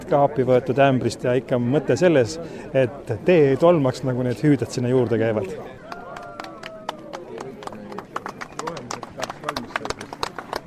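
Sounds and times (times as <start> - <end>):
speech: 0.1 - 5.8
applause from museum opening visitors: 5.8 - 10.6.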